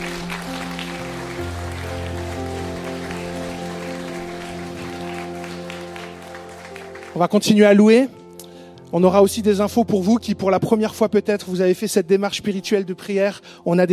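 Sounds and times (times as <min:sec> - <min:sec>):
audience applause: 0:00.0 - 0:07.3
speech: 0:07.2 - 0:08.2, 0:08.9 - 0:13.9.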